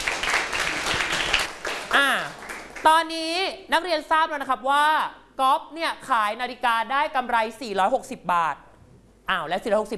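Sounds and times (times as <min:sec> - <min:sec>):
students clapping for a classmate in a classroom during a maths lesson: 0:00.0 - 0:02.9
speech: 0:02.0 - 0:08.7, 0:09.3 - 0:09.9.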